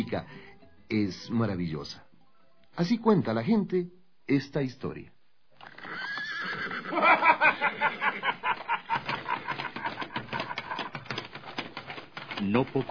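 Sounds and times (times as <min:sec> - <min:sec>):
speech: 0:00.0 - 0:02.1, 0:02.8 - 0:05.2, 0:12.4 - 0:12.8
horse neighing: 0:05.6 - 0:08.3
laughter: 0:06.9 - 0:11.1.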